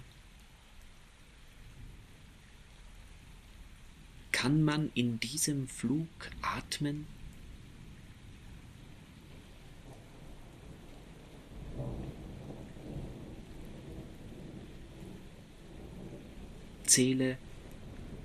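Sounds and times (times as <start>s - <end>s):
rain in a thunderstorm: 0.0s - 18.2s
speech: 4.4s - 7.2s, 17.0s - 17.5s
thunder in a thunderstorm: 9.3s - 16.8s, 17.5s - 18.2s.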